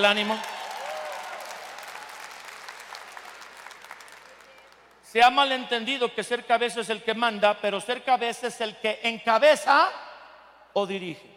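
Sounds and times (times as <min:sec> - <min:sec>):
speech: 0:00.0 - 0:00.5, 0:05.1 - 0:10.0, 0:10.8 - 0:11.3
audience applause: 0:00.0 - 0:05.0.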